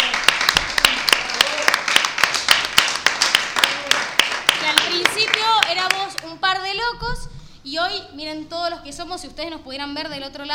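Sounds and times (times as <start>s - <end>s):
applause: 0.0s - 6.2s
speech: 7.6s - 10.5s.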